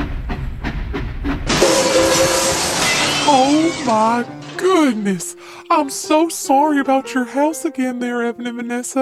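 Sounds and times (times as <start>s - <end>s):
train rolling past with chugging clatter: 0.0s - 4.6s
hissing steam: 1.5s - 4.6s
thin squealing tone: 1.5s - 5.2s
speech: 3.3s - 8.9s.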